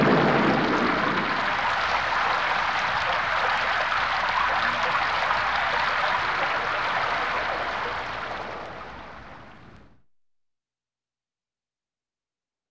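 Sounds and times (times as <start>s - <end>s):
thunder: 0.0s - 9.9s
rain: 0.0s - 10.0s.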